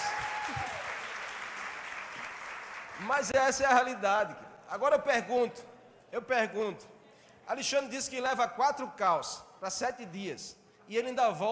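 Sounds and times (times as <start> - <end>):
crowd applauding: 0.0 - 3.4
speech: 3.0 - 6.9, 7.5 - 11.5.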